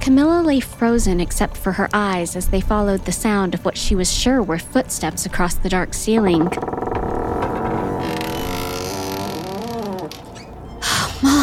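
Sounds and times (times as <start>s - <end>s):
speech: 0.0s - 6.7s
door creaking open: 5.9s - 11.4s.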